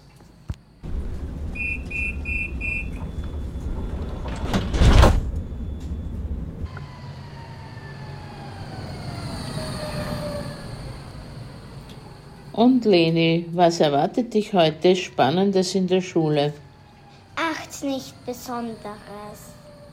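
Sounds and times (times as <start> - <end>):
tram arriving: 0.8 - 19.9
tram sliding doors opening: 0.9 - 7.5
speech: 12.6 - 16.6, 17.8 - 19.6.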